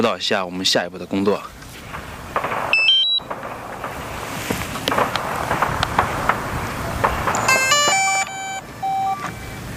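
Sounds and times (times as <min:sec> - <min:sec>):
speech: 0:00.0 - 0:02.0
outdoor wind: 0:00.0 - 0:09.7
camera drone electronic beeps: 0:02.7 - 0:03.2, 0:07.4 - 0:09.4.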